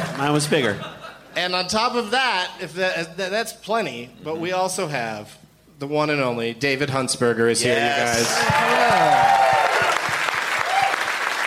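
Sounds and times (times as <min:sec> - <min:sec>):
speech: 0:00.2 - 0:09.4
audience applause: 0:08.1 - 0:11.4.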